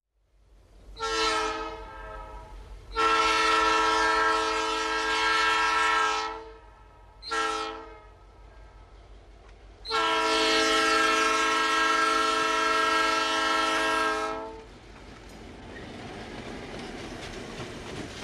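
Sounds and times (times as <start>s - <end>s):
slow train whistle: 0.9s - 8.6s, 9.8s - 14.7s.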